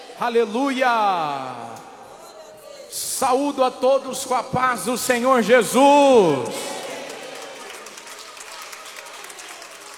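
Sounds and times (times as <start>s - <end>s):
speech: 0.2s - 1.9s, 2.9s - 6.7s
audience clapping: 6.1s - 9.9s.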